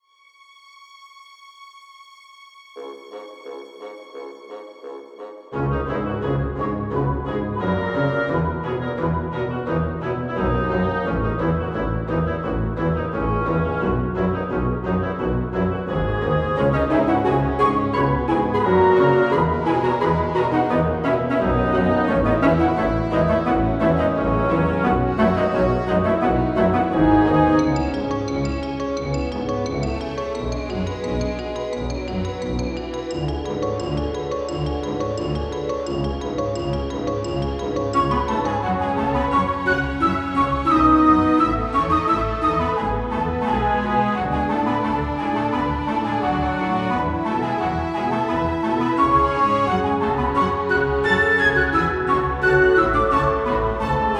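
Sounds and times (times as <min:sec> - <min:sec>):
orchestral arrangement: 0:01.3 - 0:54.1.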